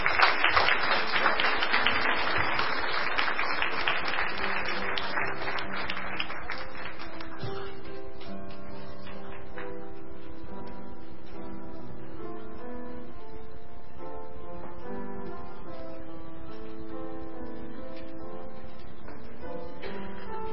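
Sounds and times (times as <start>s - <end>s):
audience round of applause: 0.0s - 7.8s.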